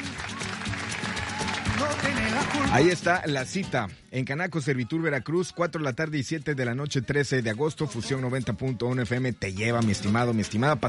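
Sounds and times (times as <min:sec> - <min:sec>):
crowd cheering and applauding for a congratulated family: 0:00.0 - 0:03.2
speech: 0:01.8 - 0:10.8.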